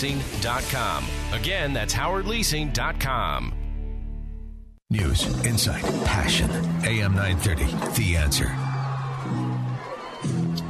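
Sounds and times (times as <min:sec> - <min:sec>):
speech: 0:00.0 - 0:03.6, 0:04.9 - 0:09.4
football crowd cheering: 0:06.6 - 0:10.6.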